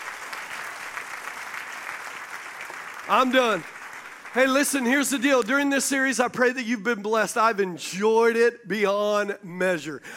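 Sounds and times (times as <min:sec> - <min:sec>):
audience clapping: 0:00.0 - 0:06.1
speech: 0:03.1 - 0:03.8, 0:04.4 - 0:10.1.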